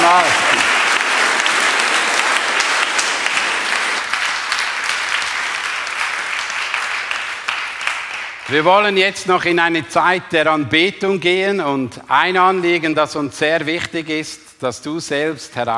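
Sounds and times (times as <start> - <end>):
audience applause: 0.0 - 8.7
speech: 8.5 - 15.7.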